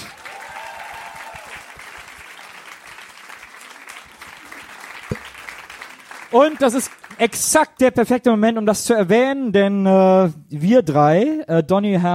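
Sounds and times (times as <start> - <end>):
audience applause: 0.0 - 7.2
speech: 6.3 - 12.1.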